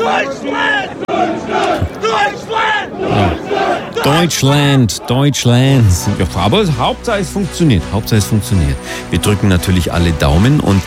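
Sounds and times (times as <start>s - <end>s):
crowd cheering and chanting on a team in American style: 0.0s - 7.6s
speech: 0.1s - 3.4s, 4.0s - 10.8s.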